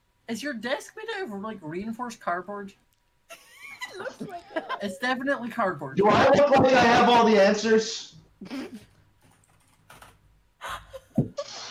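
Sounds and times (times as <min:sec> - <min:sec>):
speech: 0:00.3 - 0:02.9, 0:04.0 - 0:08.9
laughter: 0:03.3 - 0:05.2
typing numbers on a computer keyboard: 0:09.3 - 0:10.2.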